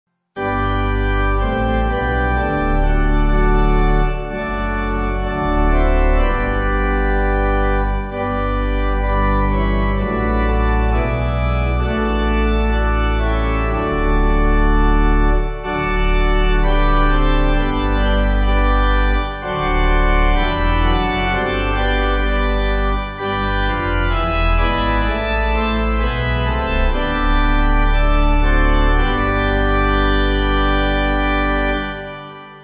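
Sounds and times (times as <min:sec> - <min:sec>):
pipe organ hymn backing: 0:00.4 - 0:32.6.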